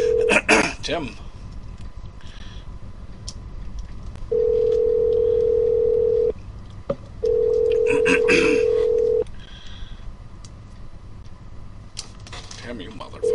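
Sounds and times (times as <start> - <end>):
ringback tone of an outgoing phone call: 0.0 - 0.3, 4.3 - 6.3, 7.2 - 9.2
speech: 0.9 - 1.3.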